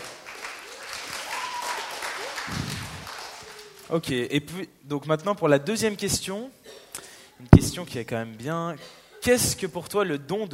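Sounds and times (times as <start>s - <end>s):
audience applause: 0.0s - 3.9s
speech: 3.9s - 6.6s, 7.4s - 10.5s.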